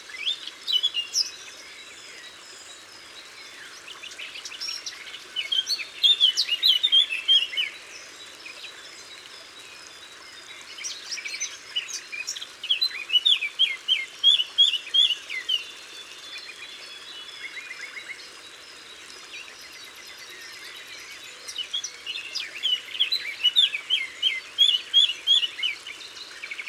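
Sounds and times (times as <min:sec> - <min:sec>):
Eurasian blackcap singing: 0:00.0 - 0:26.6.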